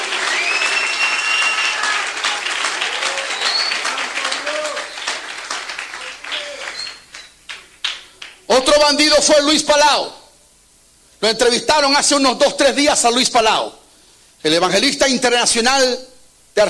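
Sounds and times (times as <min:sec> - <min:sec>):
audience applause: 0:00.0 - 0:08.4
speech: 0:08.8 - 0:10.2, 0:11.2 - 0:13.8, 0:14.4 - 0:16.6.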